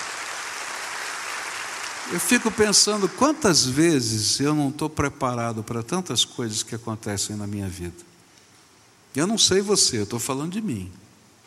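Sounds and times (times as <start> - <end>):
audience applause: 0.0 - 3.8
speech: 2.1 - 8.1, 9.2 - 11.1.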